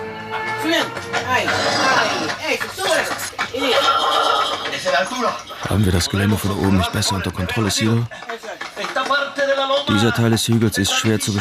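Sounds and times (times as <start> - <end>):
speech: 0.6 - 11.3
horses neighing and whinnying: 1.4 - 2.4, 3.6 - 5.3.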